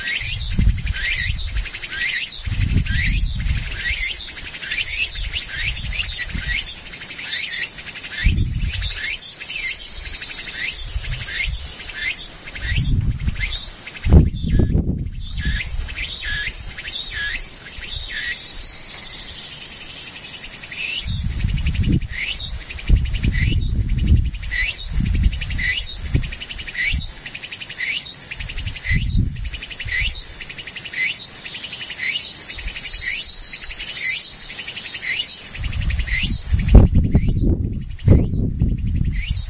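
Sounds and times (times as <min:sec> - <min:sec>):
dense insect chorus trilling: 0:00.0 - 0:39.4
low rumbling wind gusts: 0:00.2 - 0:01.8, 0:02.4 - 0:04.0, 0:08.2 - 0:09.0, 0:10.8 - 0:11.8, 0:12.6 - 0:16.8, 0:21.0 - 0:27.0, 0:28.4 - 0:30.1, 0:35.5 - 0:39.4.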